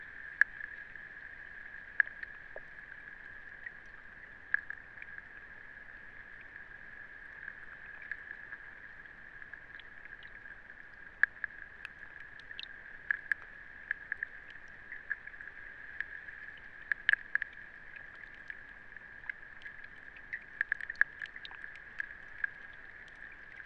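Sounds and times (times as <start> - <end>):
light rain on a duckweed pond: 0.0 - 23.6.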